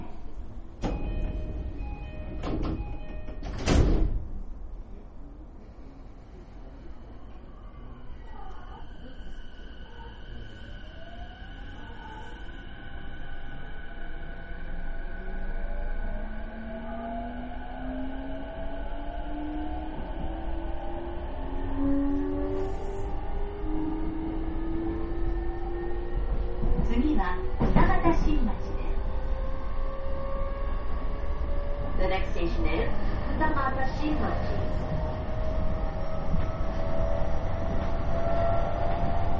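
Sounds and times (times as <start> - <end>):
train pulling away with motor whine: 0.0 - 39.3
train doors sliding shut: 0.6 - 4.4.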